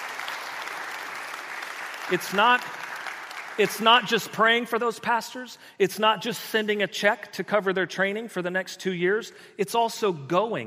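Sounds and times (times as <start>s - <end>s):
audience applause: 0.0s - 4.2s
speech: 2.1s - 2.8s, 3.6s - 10.6s.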